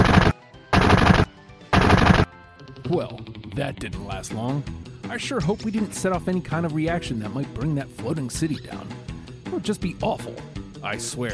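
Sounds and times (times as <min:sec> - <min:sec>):
gunfire from a gun arm in a video game: 0:00.0 - 0:02.3
speech: 0:02.9 - 0:11.3.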